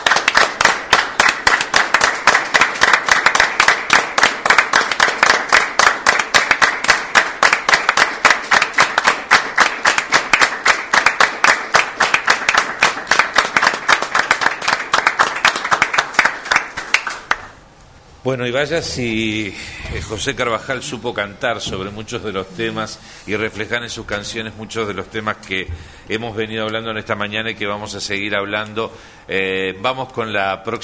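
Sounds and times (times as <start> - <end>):
standing audience applause: 0.0 - 17.6
speech: 18.3 - 30.8.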